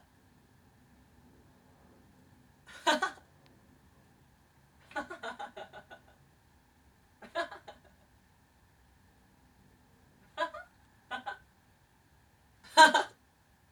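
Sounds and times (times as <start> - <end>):
person laughing: 2.7 - 3.2, 4.9 - 6.1, 7.2 - 8.0, 12.7 - 13.1.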